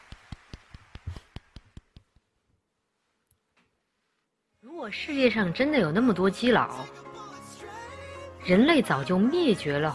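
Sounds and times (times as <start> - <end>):
hands clapping: 0.0 - 2.3
speech: 4.8 - 7.0, 8.5 - 9.9.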